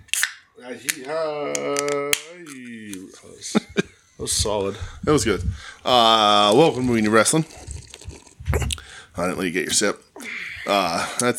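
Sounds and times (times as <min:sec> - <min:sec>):
beverage can popping open: 0:00.1 - 0:02.6
speech: 0:00.6 - 0:07.7, 0:09.2 - 0:10.0, 0:10.7 - 0:11.3
wordless voice holding a drawn-out tone: 0:00.6 - 0:11.3
laughter: 0:03.4 - 0:04.2.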